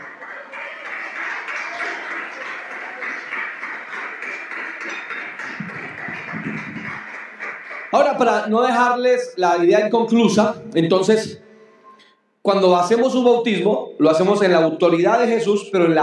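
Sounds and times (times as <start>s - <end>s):
audience applauding: 0.0s - 8.8s
speech: 7.9s - 11.4s, 12.5s - 16.0s.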